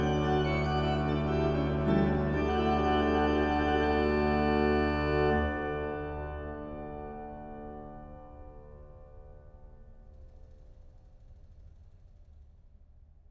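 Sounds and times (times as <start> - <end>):
organ piece: 0.0 - 8.7.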